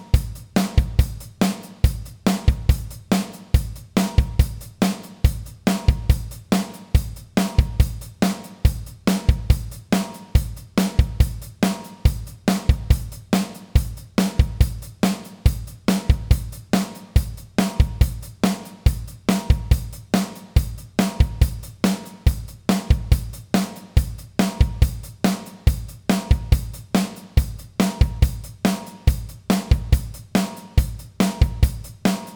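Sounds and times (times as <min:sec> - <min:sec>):
drums playing chorus: 0:00.0 - 0:32.3.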